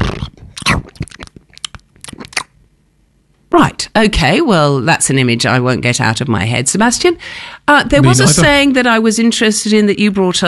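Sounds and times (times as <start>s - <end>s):
person imitating wet crunching and chewing: 0.0s - 2.6s
speech: 4.0s - 10.4s.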